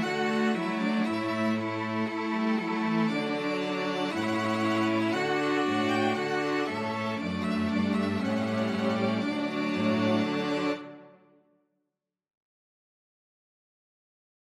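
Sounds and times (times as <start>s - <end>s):
string quartet playing: 0.0s - 11.2s.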